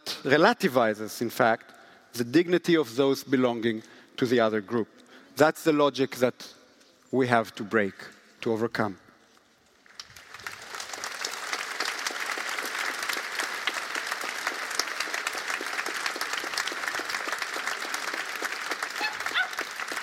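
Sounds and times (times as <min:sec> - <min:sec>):
speech: 0:00.2 - 0:09.0
audience applause: 0:09.9 - 0:20.0.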